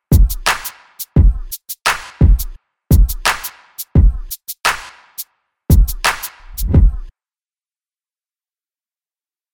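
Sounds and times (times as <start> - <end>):
86 bpm beat loop: 0.0 - 7.1.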